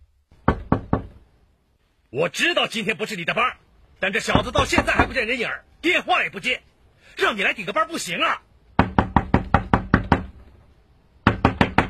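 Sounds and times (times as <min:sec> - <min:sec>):
knocking on a door: 0:00.4 - 0:01.2, 0:04.3 - 0:05.2, 0:08.8 - 0:10.4, 0:11.2 - 0:11.8
speech: 0:02.1 - 0:08.5.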